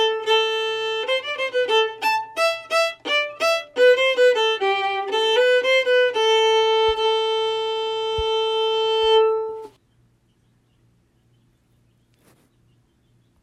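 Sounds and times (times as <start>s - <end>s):
fiddle playing a slow tune: 0.0s - 9.8s.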